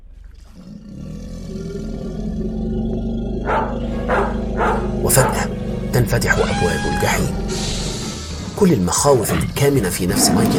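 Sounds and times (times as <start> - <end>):
wild animals roaring: 0.0 - 10.5
dogs barking: 3.4 - 6.6
speech: 6.1 - 7.8, 8.6 - 10.5.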